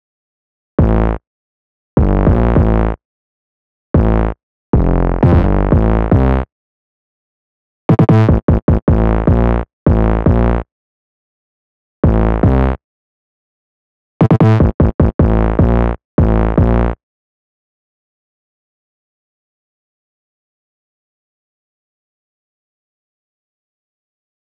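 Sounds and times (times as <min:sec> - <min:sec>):
silly isolated bass line: 0:00.8 - 0:01.2, 0:02.0 - 0:03.0, 0:04.0 - 0:06.5, 0:07.9 - 0:10.6, 0:12.0 - 0:12.8, 0:14.2 - 0:17.0.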